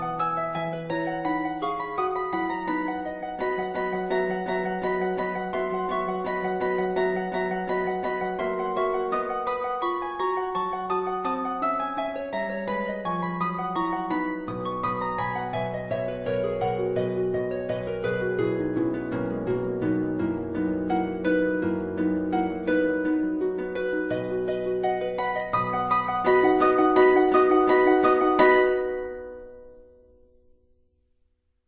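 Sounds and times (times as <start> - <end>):
harp etude: 0.0 - 30.2.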